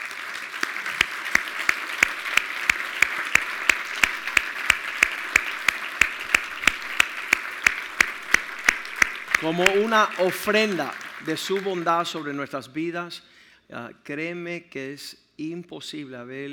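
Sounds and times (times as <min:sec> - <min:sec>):
audience applause: 0:00.0 - 0:12.2
speech: 0:09.4 - 0:16.5.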